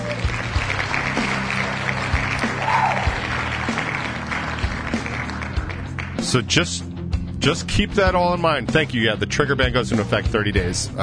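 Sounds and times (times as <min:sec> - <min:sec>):
sarcastic applause: 0:00.0 - 0:06.4
speech: 0:06.3 - 0:11.0.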